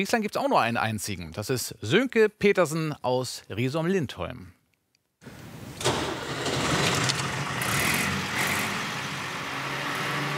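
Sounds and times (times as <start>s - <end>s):
speech: 0.0s - 4.6s
vintage Schlüter tractor engine cranking and running: 5.3s - 10.2s.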